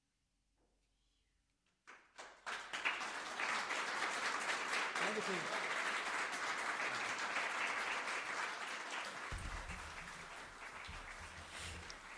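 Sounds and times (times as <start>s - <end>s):
long applause after live concert: 1.9s - 12.1s
speech: 5.2s - 5.8s.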